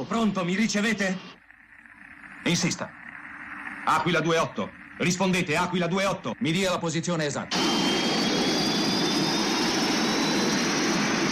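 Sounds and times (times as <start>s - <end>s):
speech: 0.0s - 1.4s, 2.4s - 3.0s, 3.9s - 7.9s
faint high whine: 0.0s - 11.2s
aircraft engines roaring: 7.5s - 11.2s.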